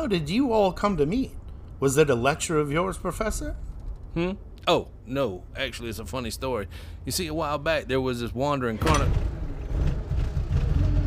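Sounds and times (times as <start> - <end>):
speech: 0.0 - 9.3
car engine rumbling unevenly with engine trouble: 8.8 - 11.0.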